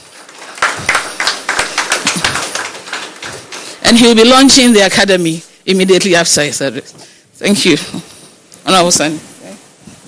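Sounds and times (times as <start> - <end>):
small crowd applause: 0.0 - 4.3
speech: 3.9 - 9.3.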